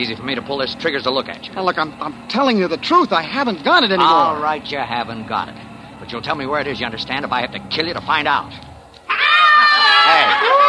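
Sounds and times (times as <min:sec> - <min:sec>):
speech: 0:00.0 - 0:08.7
rowdy crowd of drunken revelers shouting, whooping and laughing: 0:09.1 - 0:10.6.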